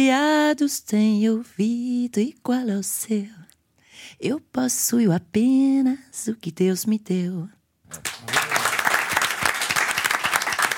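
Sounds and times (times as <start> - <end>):
speech: 0.0 - 3.4, 4.0 - 8.1
applause: 7.9 - 10.7.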